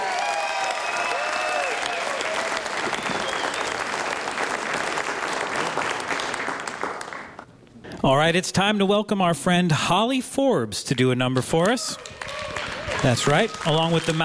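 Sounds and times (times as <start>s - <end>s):
audience applause for a performer at a live music stage show: 0.0s - 7.4s, 12.0s - 14.2s
speech: 8.0s - 12.1s, 13.0s - 14.2s.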